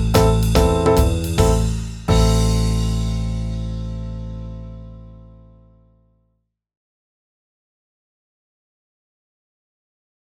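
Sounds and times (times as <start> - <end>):
backing track in C major at 144 bpm: 0.0 - 5.2.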